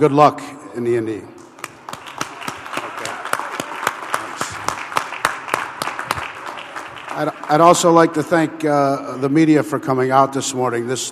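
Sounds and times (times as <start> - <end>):
speech: 0.0 - 1.4, 7.2 - 11.0
round of applause from a group: 1.4 - 8.3.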